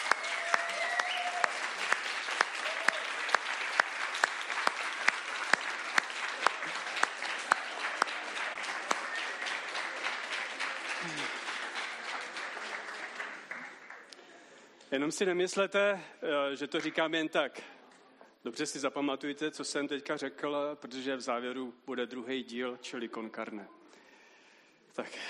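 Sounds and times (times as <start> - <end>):
audience applause: 0.0 - 14.2
speech: 14.9 - 17.7, 18.4 - 23.8, 25.0 - 25.2.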